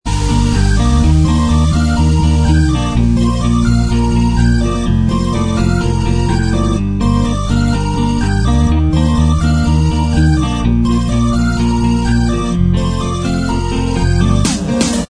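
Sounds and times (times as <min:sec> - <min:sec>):
instrumental backing track: 0:00.0 - 0:15.0.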